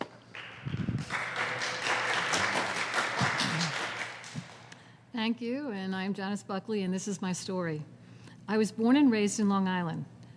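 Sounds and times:
audience applause: 0.3 - 4.7
speech: 5.2 - 10.1.

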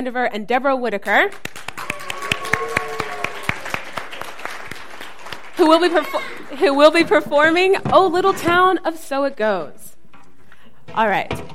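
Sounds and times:
speech: 0.0 - 1.5, 5.6 - 9.9, 10.9 - 11.5
audience applause: 1.4 - 7.0.

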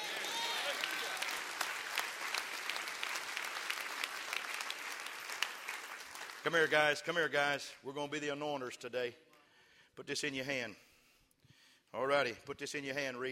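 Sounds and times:
audience clapping hands: 0.0 - 7.2
speech: 6.4 - 9.3, 10.0 - 10.9, 11.9 - 13.3.

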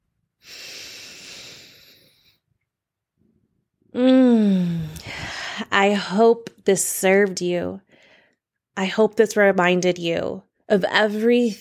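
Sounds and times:
deep breath in through the nose or mouth: 0.4 - 2.4, 4.4 - 5.7, 7.9 - 8.4
voiced breath out: 0.4 - 2.4, 4.3 - 5.7
speech: 5.8 - 7.9, 8.8 - 11.5.

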